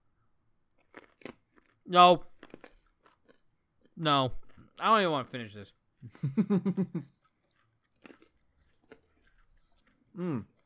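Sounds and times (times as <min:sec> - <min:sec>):
raw carrot being bitten and chewed: 0:00.8 - 0:05.5, 0:07.2 - 0:10.6
speech: 0:01.9 - 0:02.3, 0:04.0 - 0:07.1, 0:10.2 - 0:10.5.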